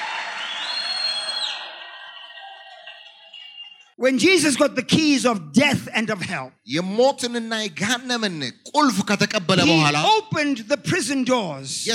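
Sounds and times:
people clapping: 0.0 - 4.0
speech: 4.0 - 11.9.

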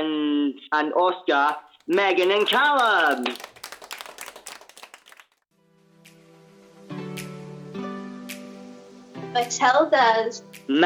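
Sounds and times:
speech: 0.7 - 3.5, 9.4 - 10.8
crowd applause: 1.8 - 5.4.

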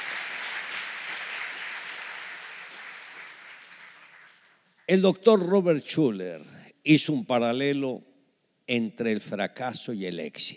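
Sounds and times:
crowd applauding: 0.0 - 4.9
speech: 4.9 - 8.1, 8.7 - 10.5.

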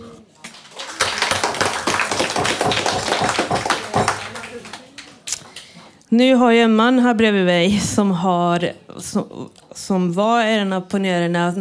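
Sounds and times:
audience applause: 0.4 - 5.3
speech: 6.1 - 11.5.

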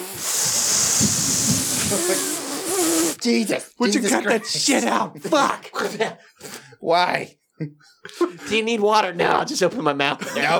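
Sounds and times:
voice imitating a misting sprayer: 0.0 - 3.3
laughter: 1.8 - 2.4, 3.9 - 6.2, 7.6 - 8.7, 10.1 - 10.5
speech: 1.9 - 2.4, 3.2 - 10.5.

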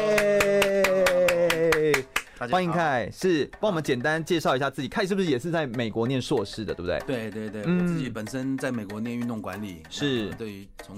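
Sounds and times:
welcoming applause of quick sharp claps: 0.0 - 2.6
speech: 2.4 - 10.9.

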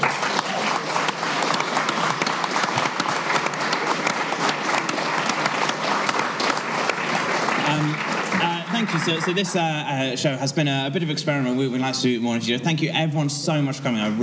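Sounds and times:
audience applause for a comedian at a live show: 0.0 - 10.2
speech: 9.0 - 14.2.

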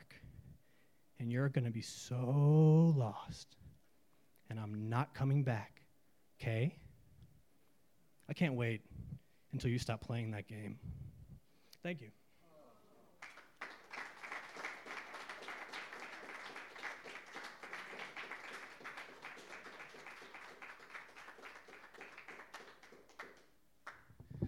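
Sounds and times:
speech: 1.2 - 3.6, 4.5 - 5.8, 6.4 - 6.8, 8.3 - 11.1, 11.8 - 12.2
audience applause: 13.2 - 24.1.

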